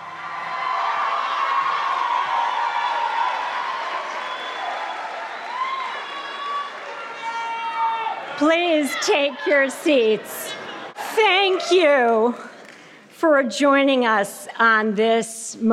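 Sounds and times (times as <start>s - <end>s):
graduation crowd cheering: 0.0s - 12.0s
speech: 8.4s - 10.6s, 11.2s - 12.5s, 13.2s - 15.7s.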